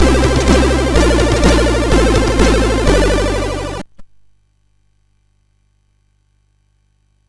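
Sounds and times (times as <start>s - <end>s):
MOS6581R4 SID chip music: 0.0s - 3.9s.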